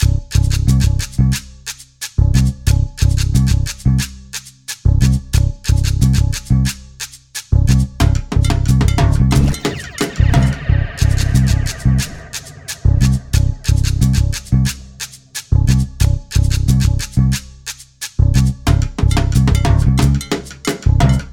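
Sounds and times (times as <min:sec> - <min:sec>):
bassline: 0:00.0 - 0:21.3.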